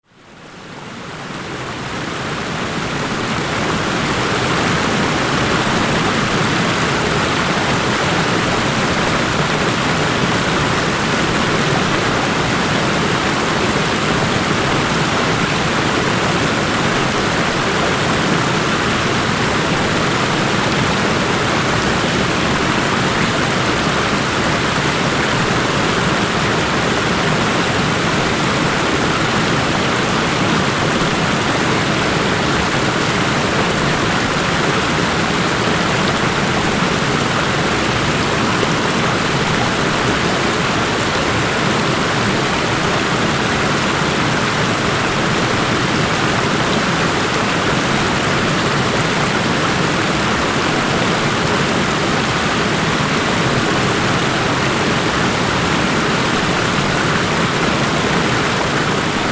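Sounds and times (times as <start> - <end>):
waterfall: 0.0 - 59.3.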